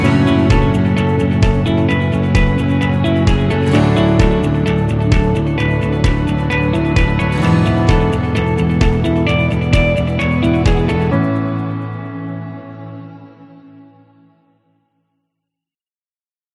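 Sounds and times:
corporate lite rock music: 0.0 - 13.1.

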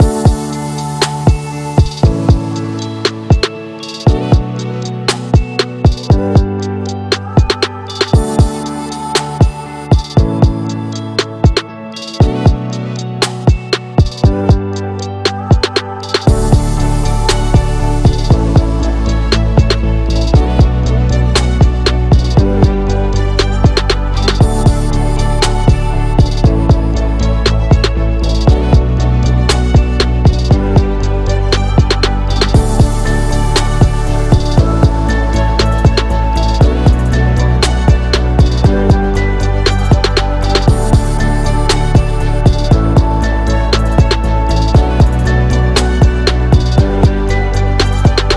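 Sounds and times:
corporate health music: 0.0 - 48.3.

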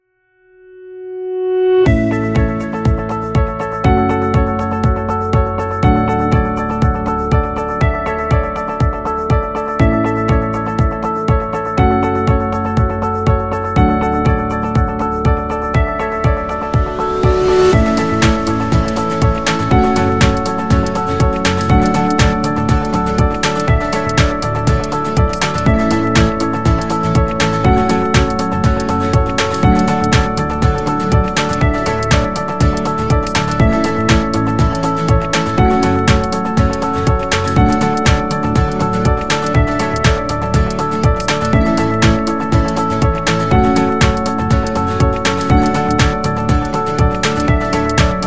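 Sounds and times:
corporate music: 1.3 - 48.2.

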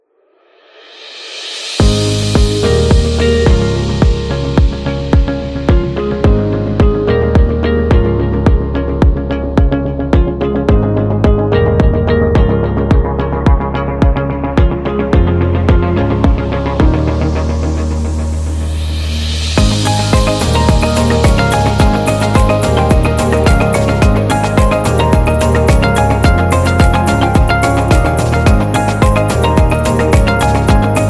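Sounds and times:
business corporate music: 1.0 - 31.0.

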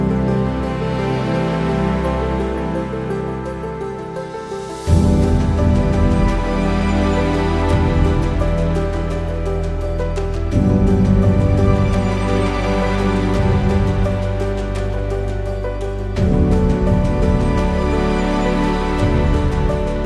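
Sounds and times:
atmospheric piano: 0.0 - 20.0.

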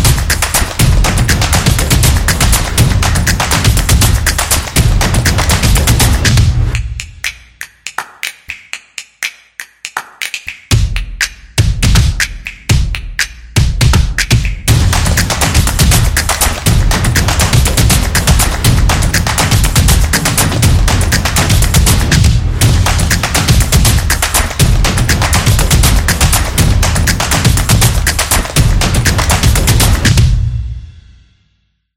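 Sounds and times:
upbeat percussion beat: 0.0 - 31.2.

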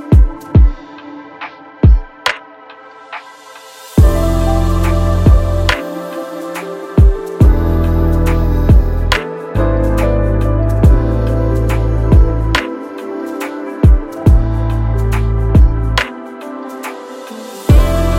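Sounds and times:
lo-fi beats: 4.0 - 16.6, 17.7 - 18.1.

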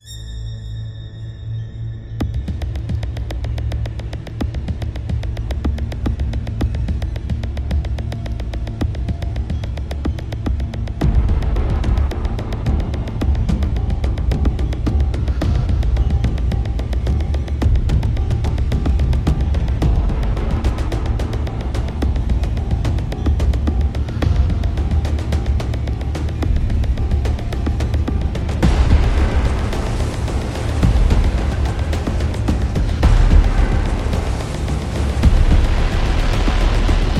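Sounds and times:
suspense music: 0.0 - 37.1.

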